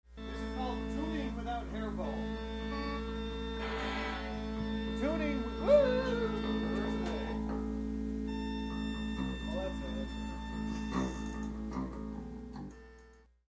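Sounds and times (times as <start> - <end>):
instrument tuning: 0.1 - 13.3.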